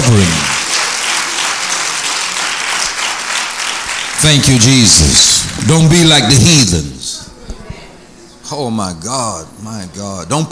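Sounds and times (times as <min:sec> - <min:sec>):
audience clapping hands: 0:00.0 - 0:07.0
speech: 0:04.2 - 0:07.0, 0:08.5 - 0:10.5.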